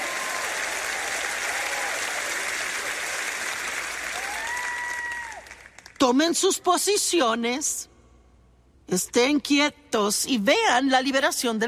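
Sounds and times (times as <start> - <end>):
cheering: 0.0 - 5.7
applause: 0.0 - 6.0
speech: 6.0 - 7.9, 8.9 - 11.6.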